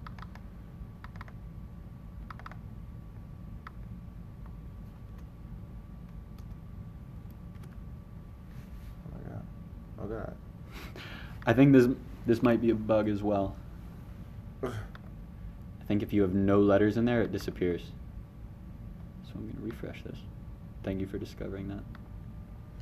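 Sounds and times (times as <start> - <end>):
computer keyboard key clicks: 1.0 - 1.4, 2.3 - 2.6
speech: 10.2 - 13.6, 14.6 - 14.9, 15.9 - 18.0, 19.3 - 22.0.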